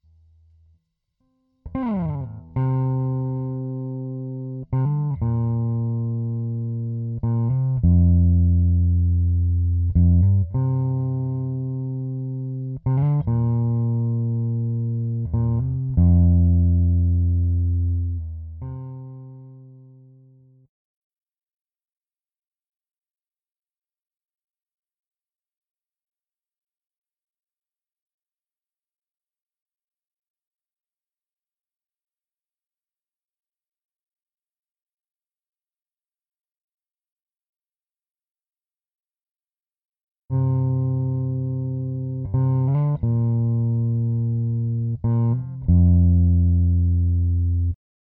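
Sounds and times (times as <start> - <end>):
bass: 1.6 - 20.7, 40.3 - 48.1.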